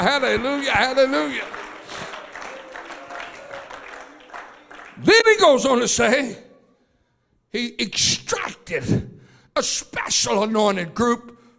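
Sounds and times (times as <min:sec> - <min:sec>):
speech: 0:00.0 - 0:02.0, 0:05.0 - 0:06.4, 0:07.5 - 0:11.4
audience hand clapping: 0:00.0 - 0:05.6.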